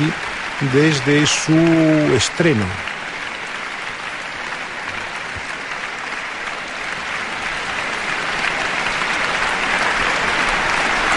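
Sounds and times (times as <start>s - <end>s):
speech: 0.0s - 2.9s
concert audience applauding enthusiastically: 0.0s - 11.1s.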